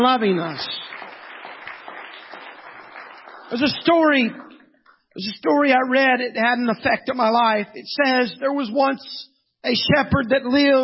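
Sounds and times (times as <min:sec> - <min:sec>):
speech: 0:00.0 - 0:01.0, 0:03.5 - 0:04.5, 0:05.2 - 0:10.8
people clapping: 0:00.0 - 0:05.0.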